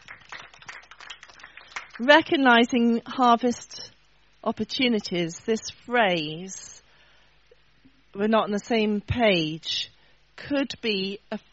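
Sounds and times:
crowd applauding: 0.0 - 2.1
speech: 2.0 - 3.8, 4.4 - 6.7, 8.2 - 9.9, 10.5 - 11.5.

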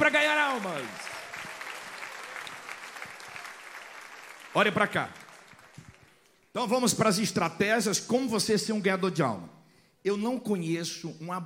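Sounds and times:
speech: 0.0 - 1.1, 4.6 - 5.2, 6.6 - 11.4
audience applause: 0.0 - 6.4.

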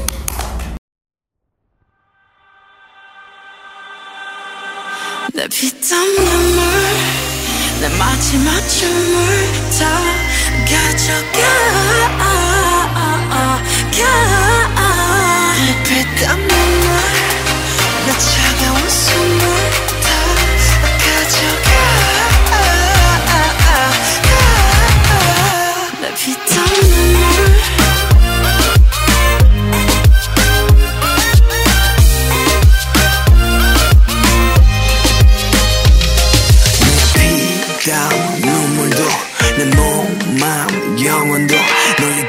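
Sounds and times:
K-pop song: 2.8 - 42.2
layered vocals: 2.9 - 42.2
synths: 4.2 - 42.2
speech: 5.4 - 7.1, 7.8 - 12.4, 13.6 - 14.5
heavy pulsing bass beat: 6.2 - 25.7, 26.5 - 37.6, 38.5 - 40.7.

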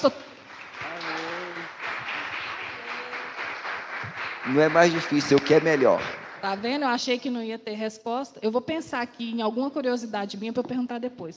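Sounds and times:
speech: 0.0 - 0.3, 4.5 - 11.3
audience applause: 0.0 - 6.9.

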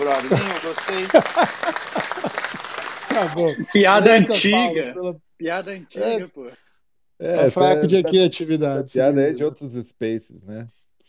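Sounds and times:
short burst of applause: 0.0 - 3.4
laughter: 0.0 - 5.1
speech: 0.2 - 1.8, 3.2 - 6.6, 7.2 - 10.8.

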